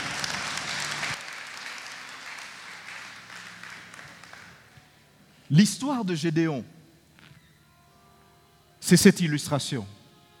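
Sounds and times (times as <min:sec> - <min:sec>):
crowd applause: 0:00.0 - 0:04.7
speech: 0:05.5 - 0:06.8, 0:08.9 - 0:10.0.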